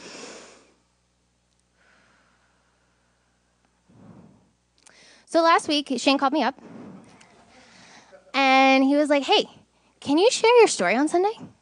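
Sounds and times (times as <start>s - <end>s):
group of people taking one big deep breath together: 1.7s - 5.3s, 6.6s - 8.2s
speech: 5.3s - 6.7s, 8.8s - 11.6s.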